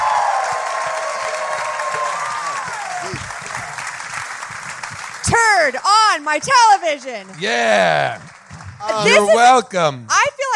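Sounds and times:
live audience cheering: 0.0s - 5.2s, 7.3s - 9.6s
live audience applause: 0.0s - 9.6s
speech: 5.5s - 10.2s.

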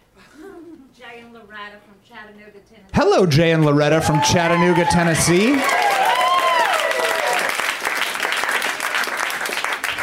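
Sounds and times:
speech: 1.1s - 6.1s
audience applause: 3.5s - 10.0s.

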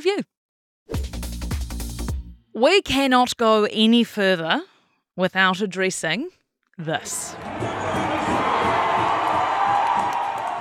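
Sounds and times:
speech: 0.0s - 1.1s, 2.6s - 7.7s
crowd noise from an American football match between Kansas City Chiefs and Chicago Bears: 7.1s - 10.6s.

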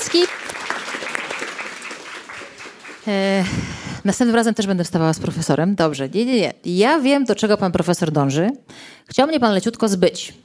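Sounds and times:
audience applause: 0.0s - 3.4s
speech: 0.1s - 0.6s, 3.1s - 10.4s.

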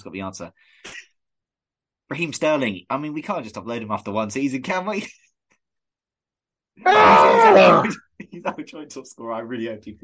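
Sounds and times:
speech: 0.0s - 1.0s, 2.1s - 5.2s, 6.8s - 10.0s
person screaming: 6.8s - 8.0s.

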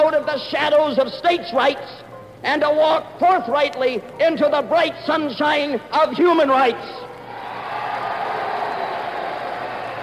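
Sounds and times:
speech: 0.2s - 7.0s
convention crowd booing: 7.2s - 10.0s.

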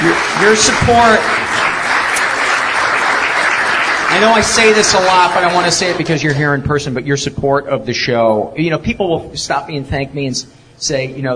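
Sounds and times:
audience applause: 0.0s - 6.2s
speech: 0.4s - 1.6s, 4.1s - 11.3s.

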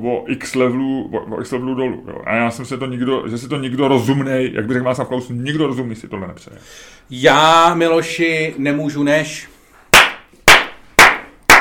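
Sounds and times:
speech: 0.0s - 9.5s
hands clapping: 9.9s - 11.5s.

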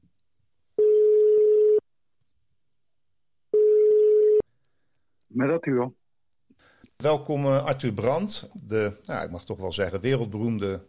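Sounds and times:
telephone ringback tone while a call is placed: 0.8s - 1.8s, 3.6s - 4.4s
speech: 5.4s - 6.0s, 7.0s - 10.8s.

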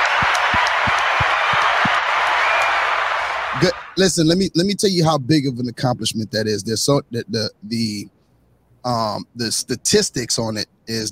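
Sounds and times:
crowd applause: 0.0s - 4.0s
speech: 3.6s - 8.2s, 8.8s - 11.1s.

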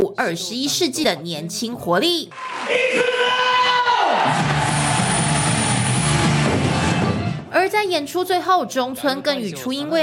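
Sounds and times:
speech: 0.2s - 3.5s, 7.6s - 10.0s
audience cheering at a kabuki show: 2.3s - 7.4s.

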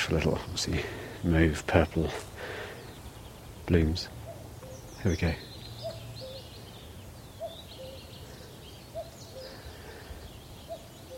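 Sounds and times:
faint birdsong: 0.0s - 11.1s
speech: 0.1s - 2.6s, 3.7s - 4.2s, 5.0s - 5.5s
cuckoo calling on the moor of Sugar Loaf mountain: 4.1s - 11.1s.

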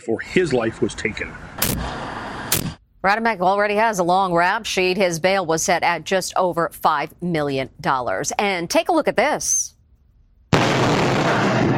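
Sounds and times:
speech: 0.0s - 2.0s, 3.0s - 9.7s
giant boulder crashing through cinder block wall: 10.5s - 11.7s.

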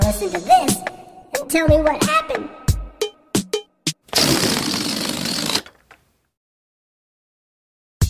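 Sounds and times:
speech: 0.1s - 2.6s
released balloon deflating and flying around: 4.1s - 5.8s
balloon rubbery squeaks: 4.1s - 6.0s.

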